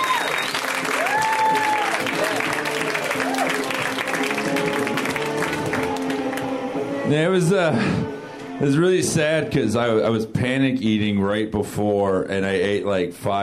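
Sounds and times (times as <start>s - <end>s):
audience applause welcoming comedian Mike Lawrence: 0.0s - 6.6s
speech: 7.1s - 13.4s.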